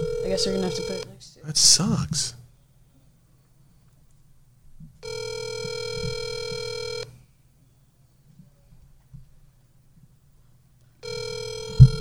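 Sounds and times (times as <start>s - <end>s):
outgoing phone call ringback tone, unanswered: 0.0s - 1.1s, 5.0s - 7.2s, 11.0s - 11.9s
low hum: 0.0s - 11.9s
speech: 0.3s - 2.4s.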